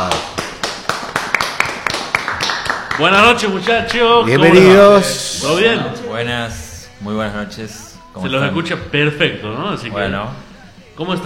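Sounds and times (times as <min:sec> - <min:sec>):
rhythmic clapping: 0:00.0 - 0:04.6
speech: 0:03.0 - 0:11.2.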